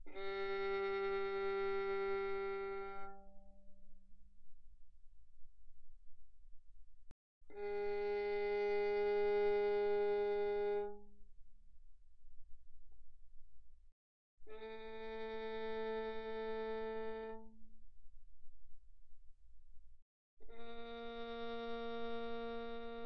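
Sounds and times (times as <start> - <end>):
violin bowed pianissimo on the G string: 0.0 - 3.5, 7.5 - 11.1, 14.5 - 17.5, 20.4 - 23.0.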